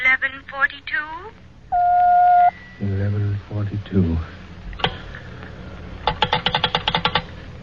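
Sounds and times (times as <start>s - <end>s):
speech: 0.6s - 1.8s, 2.8s - 4.4s
telephone time signal beep: 1.7s - 2.8s
rapid string of sharp clicks: 6.0s - 7.3s.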